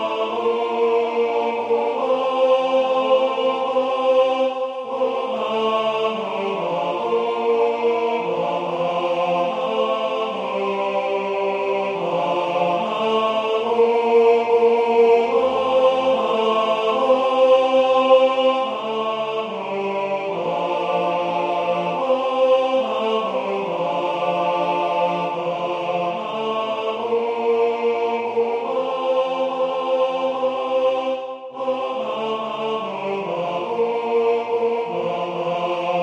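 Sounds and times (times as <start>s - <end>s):
tenor singing: 0.0s - 36.0s.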